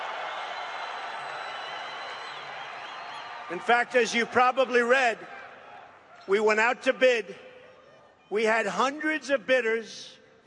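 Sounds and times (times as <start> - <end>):
crowd cheering: 0.0 - 6.2
speech: 3.5 - 5.4, 6.3 - 7.5, 8.3 - 10.4.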